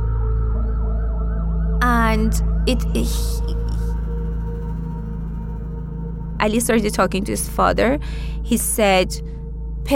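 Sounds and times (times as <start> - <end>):
ambulance siren wailing: 0.0 - 5.0
speech: 2.1 - 3.6, 6.4 - 9.9.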